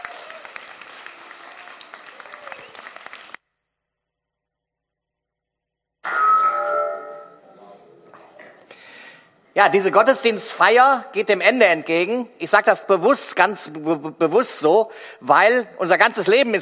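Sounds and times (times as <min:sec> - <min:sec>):
audience clapping: 0:00.0 - 0:03.4
speech: 0:09.6 - 0:16.6.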